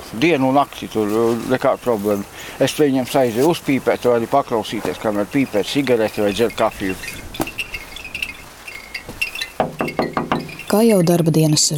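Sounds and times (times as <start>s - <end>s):
speech: 0.1s - 7.3s, 10.7s - 11.7s
wind chimes tinkling: 6.0s - 11.4s.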